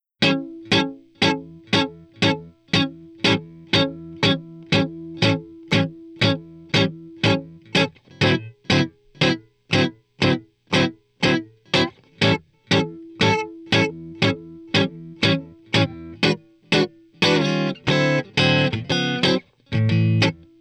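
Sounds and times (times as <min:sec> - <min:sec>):
blues guitar: 0:00.2 - 0:20.5.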